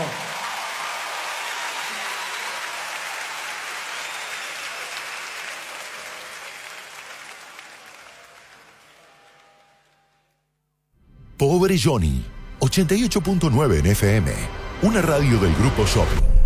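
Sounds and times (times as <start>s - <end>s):
crowd applause: 0.0s - 10.4s
speech: 11.4s - 16.3s.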